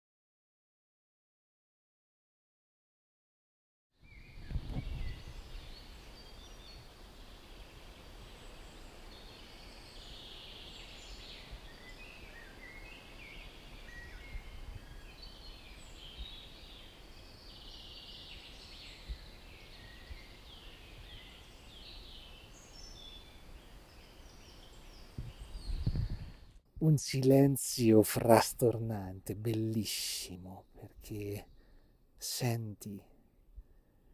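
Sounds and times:
birdsong in a beech forest: 0:04.0 - 0:33.0
speech: 0:26.8 - 0:31.5, 0:32.2 - 0:33.1.

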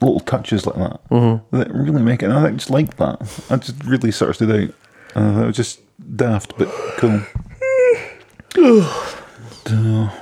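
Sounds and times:
speech: 0:00.3 - 0:07.5, 0:08.5 - 0:10.2
person yawning: 0:07.6 - 0:09.2.

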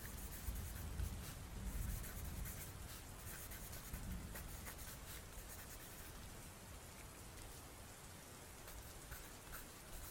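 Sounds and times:
steady rain: 0:00.0 - 0:10.1.

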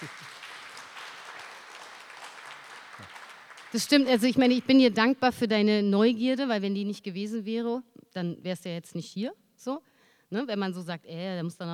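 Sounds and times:
audience applause: 0:00.0 - 0:04.6
speech: 0:03.7 - 0:11.7.

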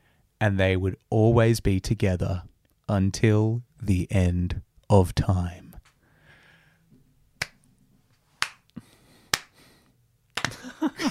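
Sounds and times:
speech: 0:00.4 - 0:05.6
hand clap: 0:07.4 - 0:07.6, 0:08.4 - 0:09.6, 0:10.4 - 0:10.7
laughter: 0:10.5 - 0:11.1.

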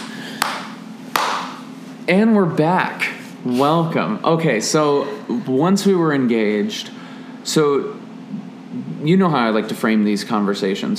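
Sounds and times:
hand clap: 0:00.0 - 0:01.6
speech: 0:02.1 - 0:08.0, 0:09.0 - 0:10.9.

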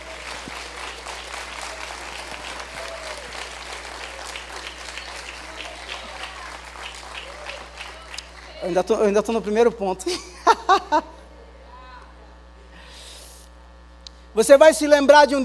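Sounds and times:
laughter: 0:00.0 - 0:08.3, 0:10.0 - 0:12.7
audience applauding: 0:00.0 - 0:08.8
speech: 0:08.7 - 0:11.2, 0:14.4 - 0:15.4.

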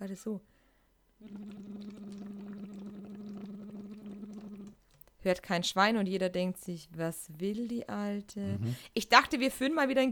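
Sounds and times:
speech: 0:00.1 - 0:00.6, 0:01.2 - 0:02.3, 0:05.2 - 0:10.1
voiced bubbling into water through voice trainer tube: 0:01.2 - 0:04.8.

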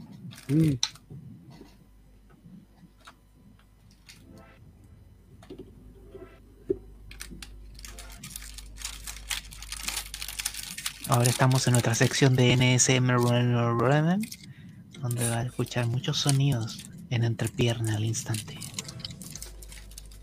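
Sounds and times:
speech: 0:00.5 - 0:01.0, 0:11.1 - 0:14.4, 0:15.0 - 0:18.6
packet of album stickers being opened, wrapper tearing: 0:07.1 - 0:13.5, 0:14.1 - 0:20.2.

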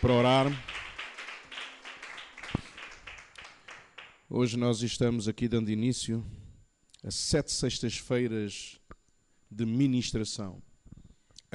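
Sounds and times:
speech: 0:00.0 - 0:00.7, 0:04.3 - 0:06.4, 0:07.0 - 0:08.9, 0:09.5 - 0:10.7
audience applause: 0:00.0 - 0:04.2.

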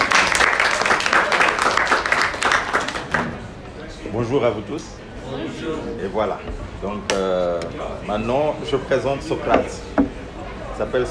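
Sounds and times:
audience applause: 0:00.0 - 0:03.2
speech: 0:04.2 - 0:10.0, 0:10.8 - 0:11.0.

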